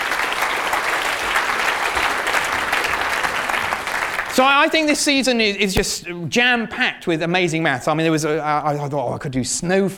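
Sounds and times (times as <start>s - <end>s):
audience applause for volunteers: 0.0s - 4.4s
speech: 4.4s - 9.9s.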